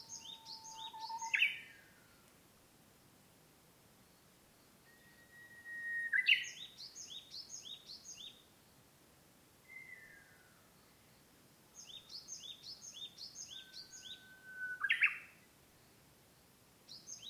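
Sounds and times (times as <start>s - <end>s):
Japanese bush warbler song, uguisu, level whistle and ornamented phrase: 0.0s - 1.9s, 4.5s - 8.4s, 9.7s - 11.2s, 11.8s - 16.0s, 16.9s - 17.2s.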